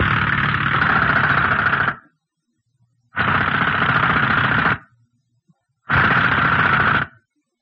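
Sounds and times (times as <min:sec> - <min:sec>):
heavy drill trying to cut through basalt rock: 0:00.0 - 0:02.0, 0:03.2 - 0:04.8, 0:05.9 - 0:07.1.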